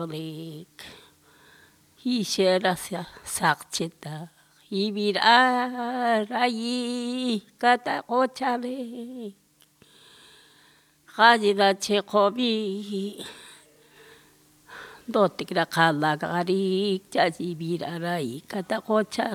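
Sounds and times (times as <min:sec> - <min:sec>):
lullabies sung in Pampa del Indio Chaco: 0:00.0 - 0:01.1, 0:02.0 - 0:09.4, 0:11.1 - 0:13.7, 0:15.0 - 0:19.3.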